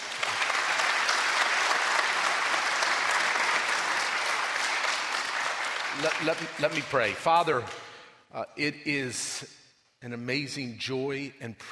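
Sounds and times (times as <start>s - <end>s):
audience clapping: 0.0s - 7.8s
speech: 6.0s - 11.7s.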